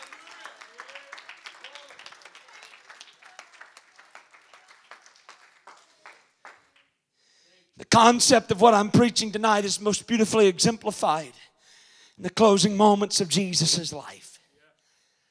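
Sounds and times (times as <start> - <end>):
people clapping: 0.0 - 7.0
speech: 7.9 - 11.4, 12.2 - 14.3.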